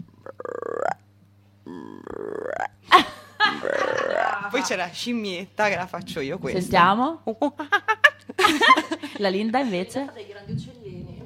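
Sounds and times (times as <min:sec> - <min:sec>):
voice imitating a frog croaking: 0:00.0 - 0:02.9, 0:03.6 - 0:04.6
laughter: 0:02.9 - 0:04.8, 0:07.6 - 0:09.9
speech: 0:04.5 - 0:07.8, 0:08.5 - 0:10.6.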